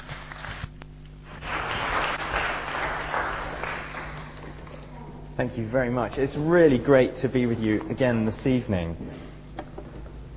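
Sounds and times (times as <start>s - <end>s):
audience applause welcoming a speaker to a talk: 1.3s - 4.9s
speech: 5.4s - 9.3s.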